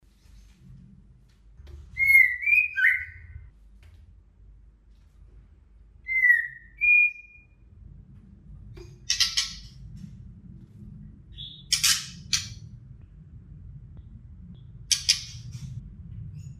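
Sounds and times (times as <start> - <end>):
female white-rumped shama whistled song: 1.9 - 3.5, 6.0 - 7.6, 11.3 - 12.5.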